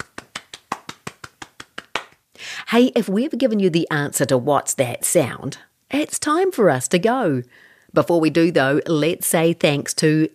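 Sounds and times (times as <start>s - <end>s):
round of applause: 0.0s - 2.2s
speech: 2.7s - 10.3s.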